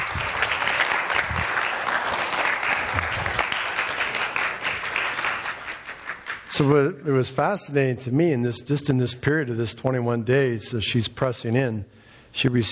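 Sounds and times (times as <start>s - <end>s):
audience applause: 0.0s - 6.5s
speech: 6.6s - 12.7s.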